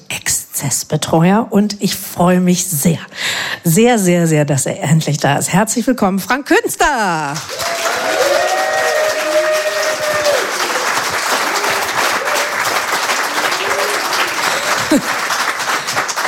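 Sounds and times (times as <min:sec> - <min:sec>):
speech: 0:00.6 - 0:07.8
voices calling out and cheering: 0:07.4 - 0:14.7
audience applause: 0:07.4 - 0:16.2.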